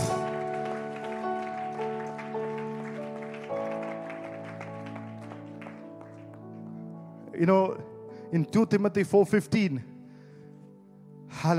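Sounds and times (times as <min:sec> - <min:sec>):
crowd clapping along: 0:00.0 - 0:06.8
sustained organ-like chords: 0:00.0 - 0:08.1
speech: 0:07.4 - 0:09.9, 0:11.4 - 0:11.5.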